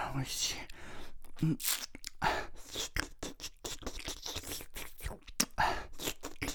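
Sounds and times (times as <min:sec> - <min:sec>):
speech: 0:00.1 - 0:00.7, 0:01.4 - 0:01.9
woman wet licking and slurping: 0:02.6 - 0:06.5.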